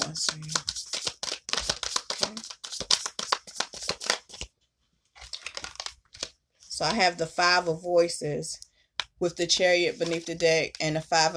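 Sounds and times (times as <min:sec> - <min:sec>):
tarot cards being shuffled and drawn: 0:00.0 - 0:04.5, 0:05.1 - 0:07.0, 0:09.6 - 0:10.6
speech: 0:06.8 - 0:08.6, 0:09.2 - 0:11.3.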